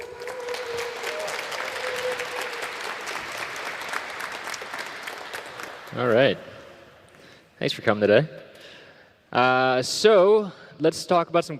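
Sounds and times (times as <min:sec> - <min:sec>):
audience applause: 0:00.0 - 0:06.8
speech: 0:06.0 - 0:06.5, 0:07.6 - 0:08.4, 0:09.3 - 0:11.5.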